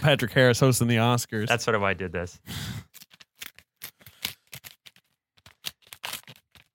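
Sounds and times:
speech: 0.0 - 3.0
envelope paper crackling and ripping: 2.9 - 6.7.

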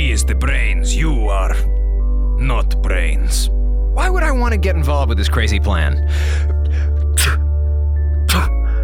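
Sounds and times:
speech: 0.1 - 1.7, 2.4 - 7.4
person sneezing from allergies: 7.2 - 7.4, 8.3 - 8.6.

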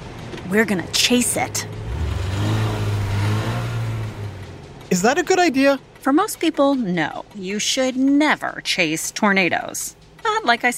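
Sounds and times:
car driving: 0.0 - 6.0
speech: 0.5 - 1.8, 4.9 - 10.7
car engine revving: 0.5 - 4.9.

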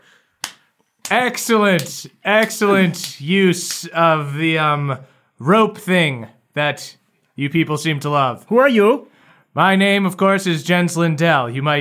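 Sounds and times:
hand clap: 0.4 - 4.0
speech: 1.1 - 11.7.

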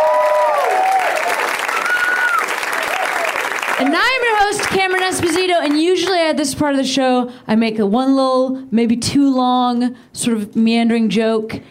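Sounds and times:
audience clapping: 0.0 - 6.3
speech: 3.8 - 11.6.

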